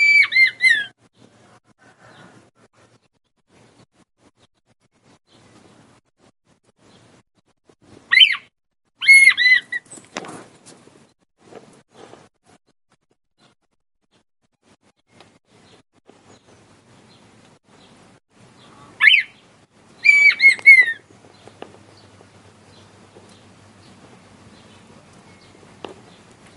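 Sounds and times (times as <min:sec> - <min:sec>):
male red-winged tinamou singing to the female: 0:00.0 - 0:01.0, 0:08.1 - 0:09.9, 0:18.6 - 0:19.4, 0:20.0 - 0:22.1.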